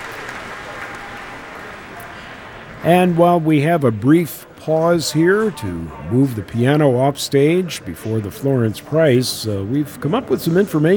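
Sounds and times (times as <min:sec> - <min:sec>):
concert audience at an outdoor park pavilion applauding a pianist: 0:00.0 - 0:02.2
speech: 0:02.8 - 0:10.9.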